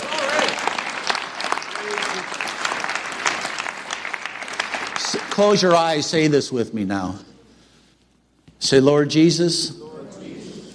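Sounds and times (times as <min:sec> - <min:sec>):
audience clapping: 0:00.0 - 0:06.0
speech: 0:05.4 - 0:07.3, 0:08.6 - 0:09.8.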